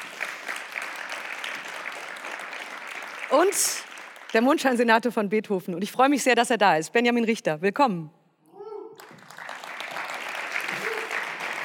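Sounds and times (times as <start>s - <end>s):
audience applause: 0.0s - 4.6s, 9.0s - 11.6s
speech: 3.3s - 8.2s.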